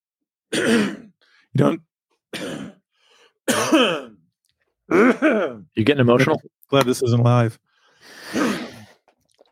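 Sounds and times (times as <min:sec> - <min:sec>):
smoker clearing throat and coughing at a Chiapas aid station: 0:00.5 - 0:01.2, 0:02.3 - 0:02.9, 0:03.5 - 0:04.2, 0:04.9 - 0:05.7
speech: 0:00.5 - 0:02.7, 0:03.5 - 0:04.2, 0:04.9 - 0:08.6.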